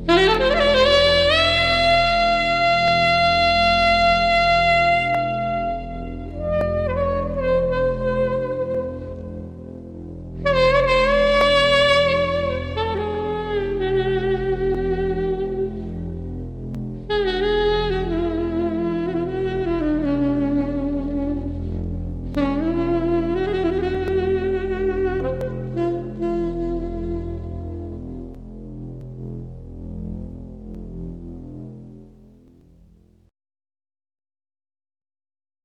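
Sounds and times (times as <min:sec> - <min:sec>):
saxophone lullaby: 0:00.0 - 0:09.7, 0:10.4 - 0:16.4, 0:17.1 - 0:28.4.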